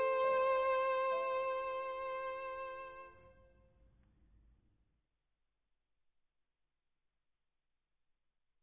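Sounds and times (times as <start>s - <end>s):
violin: 0.0s - 3.5s.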